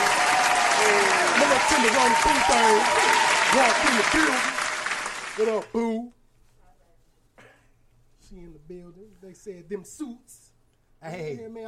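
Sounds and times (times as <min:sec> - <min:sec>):
clapping: 0:00.0 - 0:05.7
speech: 0:00.9 - 0:04.6, 0:05.4 - 0:06.2, 0:08.3 - 0:10.4, 0:11.0 - 0:11.6.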